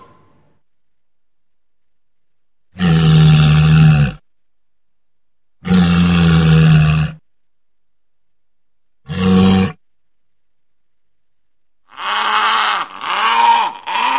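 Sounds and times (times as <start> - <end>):
walrus bellowing: 2.7 - 4.2, 5.6 - 7.2, 9.0 - 9.9, 11.9 - 14.1.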